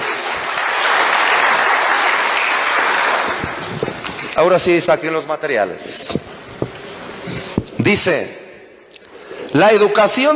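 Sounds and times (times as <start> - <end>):
audience applause: 0.0 - 4.4
speech: 4.4 - 6.2, 7.9 - 8.4, 9.5 - 10.3.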